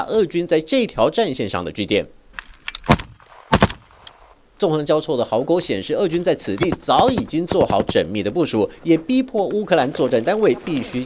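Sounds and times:
speech: 0.0 - 2.2, 4.6 - 11.0
gunfire on a battlefield: 2.9 - 4.3, 6.6 - 8.1.

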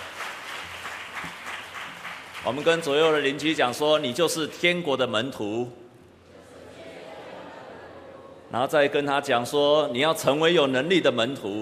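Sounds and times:
audience applause: 0.0 - 3.2
speech: 2.4 - 5.8, 8.5 - 11.6.

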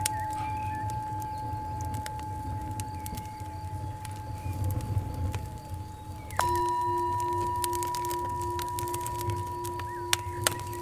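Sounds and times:
constant low rumble: 0.0 - 10.8
warm fire crackling and popping: 0.0 - 10.8
singing bowl ringing at 852 and 963 Hz: 6.4 - 10.8.

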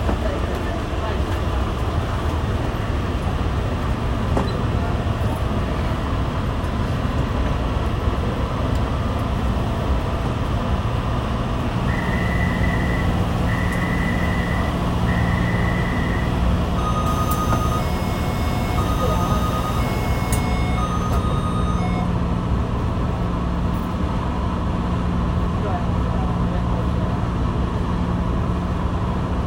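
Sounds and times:
metro train rumbling from Taipei Main Station: 0.0 - 29.4
short beeps: 11.9 - 22.2
chime pattern: 16.8 - 22.1.

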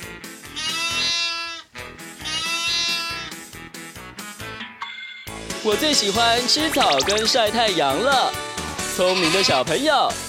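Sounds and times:
sheep bleating: 0.4 - 3.4, 8.8 - 9.7
steady rhythmic backing music: 3.4 - 9.8
speech: 5.6 - 10.2.

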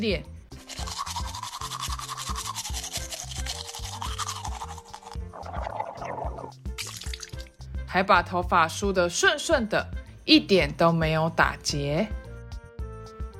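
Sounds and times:
speech: 0.0 - 0.3, 7.9 - 12.2
brushing teeth with a toothbrush: 0.5 - 7.5.

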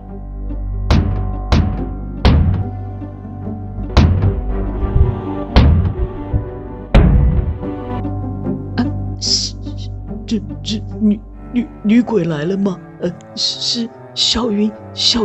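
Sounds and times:
door being opened with thumping: 0.9 - 2.8, 3.9 - 8.0
speech: 10.3 - 15.2.

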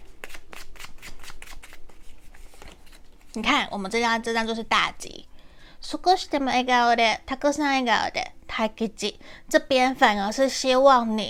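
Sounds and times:
tarot cards being shuffled and drawn: 0.1 - 3.4
speech: 3.4 - 5.3, 5.9 - 11.2.

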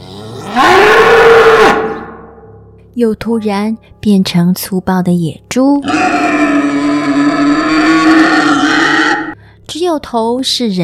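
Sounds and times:
raging wild bull bellowing: 0.0 - 2.2, 5.8 - 9.4
speech: 3.0 - 6.4, 9.7 - 10.8.

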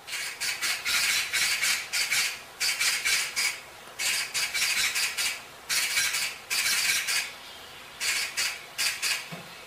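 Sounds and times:
magpie harsh hoarse rattling calls: 0.1 - 7.3, 8.0 - 9.3.

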